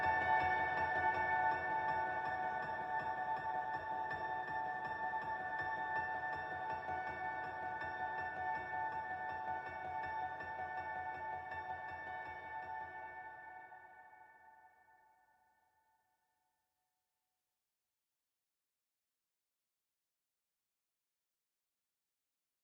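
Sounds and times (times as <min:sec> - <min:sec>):
magical piano: 0:00.0 - 0:14.2.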